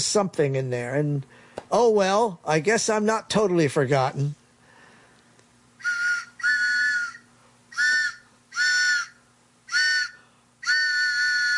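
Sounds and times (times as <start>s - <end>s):
speech: 0.0s - 4.4s
low constant hum: 0.0s - 11.5s
train whistle sound effect: 5.8s - 11.5s.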